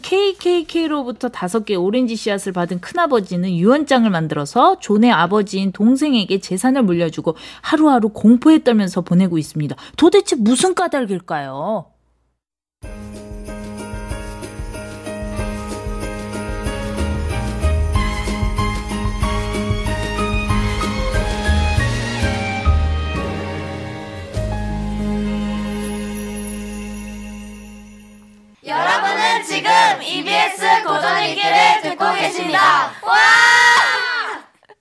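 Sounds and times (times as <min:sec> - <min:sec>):
speech: 0:00.1 - 0:11.9, 0:29.0 - 0:34.1
radio show logo jingle: 0:12.8 - 0:28.6.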